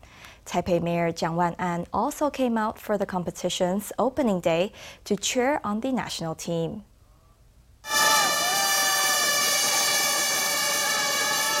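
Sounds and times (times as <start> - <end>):
speech: 0.5 - 6.9
race starting horn: 7.8 - 11.5.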